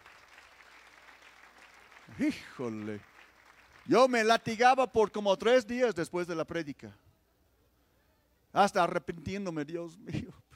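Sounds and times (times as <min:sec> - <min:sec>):
large group applauding: 0:00.0 - 0:04.3
speech: 0:02.1 - 0:03.1, 0:03.9 - 0:07.0, 0:08.5 - 0:10.4.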